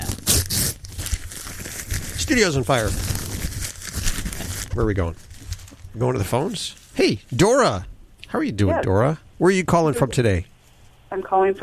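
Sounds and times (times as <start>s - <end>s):
paper being crumpled for the wastebasket: 0.0s - 7.0s
speech: 2.3s - 3.1s, 4.8s - 5.3s, 6.0s - 10.5s, 11.1s - 11.6s.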